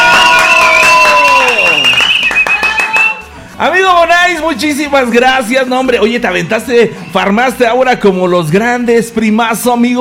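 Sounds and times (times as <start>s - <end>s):
applause: 0.0s - 3.3s
speech: 3.6s - 9.9s.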